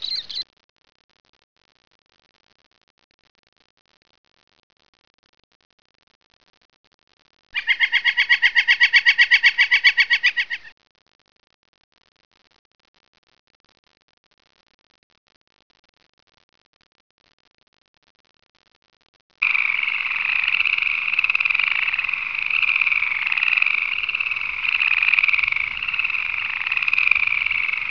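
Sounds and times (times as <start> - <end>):
nature ambience: 0.0 - 0.4, 7.6 - 10.7, 19.4 - 27.8.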